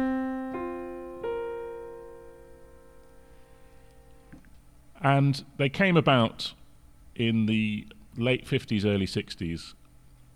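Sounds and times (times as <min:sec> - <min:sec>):
piano playing quartal harmony chords built on fourths: 0:00.0 - 0:04.4
speech: 0:05.0 - 0:06.6, 0:07.2 - 0:09.8.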